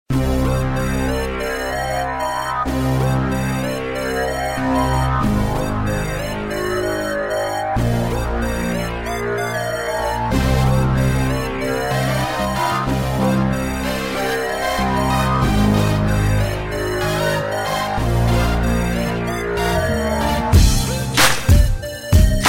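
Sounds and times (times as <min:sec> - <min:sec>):
hip hop beat: 0:00.1 - 0:22.4.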